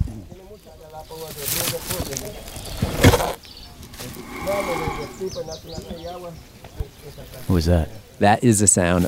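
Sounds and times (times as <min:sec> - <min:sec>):
speech: 0:01.0 - 0:03.0, 0:04.5 - 0:09.0
tortoise breathing: 0:03.9 - 0:05.3.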